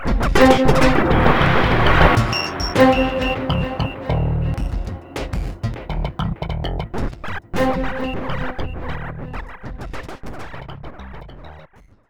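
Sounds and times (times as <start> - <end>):
funk music: 0.2 - 9.4.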